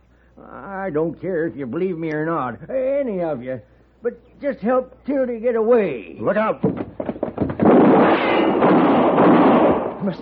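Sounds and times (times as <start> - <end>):
speech: 0.4 - 7.2, 10.0 - 10.2
gunshots in a Western radio drama: 6.6 - 10.2.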